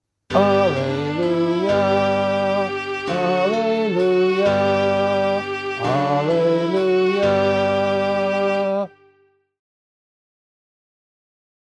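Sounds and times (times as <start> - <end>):
gospel singing: 0.3 - 8.9.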